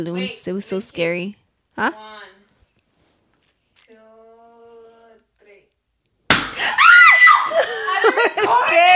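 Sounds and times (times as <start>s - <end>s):
speech: 0.0s - 2.4s, 8.1s - 8.9s
balloon popping: 6.3s - 6.6s
person shrieking in surprise: 6.6s - 7.6s
laughter: 7.5s - 8.9s.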